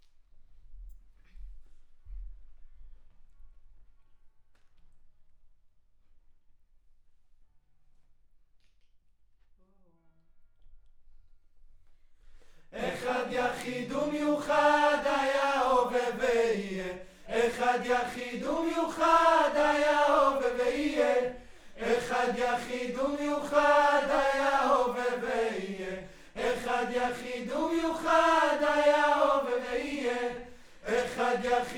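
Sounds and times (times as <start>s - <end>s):
choir singing: 12.7s - 31.7s.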